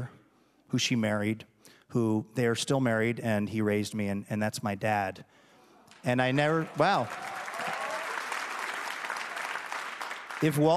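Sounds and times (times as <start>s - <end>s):
speech: 0.0s - 5.4s, 6.0s - 7.4s, 10.4s - 10.7s
audience clapping: 5.8s - 10.7s.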